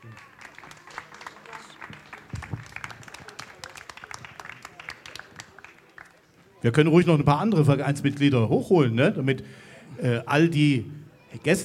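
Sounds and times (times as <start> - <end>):
audience applause: 0.0 - 6.4
speech: 6.6 - 11.6.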